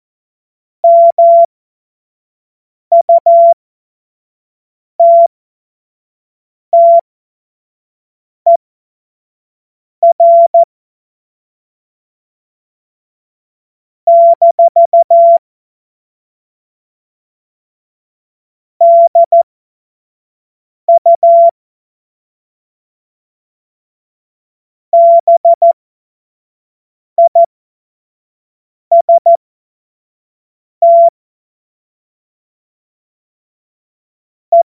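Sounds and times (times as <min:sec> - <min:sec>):
CW Morse code beeps: 0:00.8 - 0:01.5, 0:02.9 - 0:03.6, 0:05.0 - 0:05.3, 0:06.8 - 0:07.0, 0:10.0 - 0:10.7, 0:14.1 - 0:15.4, 0:18.8 - 0:19.4, 0:20.9 - 0:21.5, 0:25.0 - 0:25.8, 0:27.2 - 0:27.5, 0:28.9 - 0:29.4, 0:30.8 - 0:31.1.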